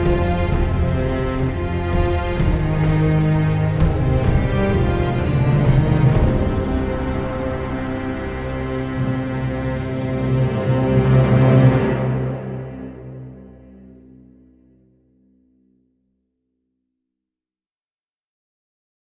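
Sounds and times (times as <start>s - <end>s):
background music: 0.0s - 15.2s.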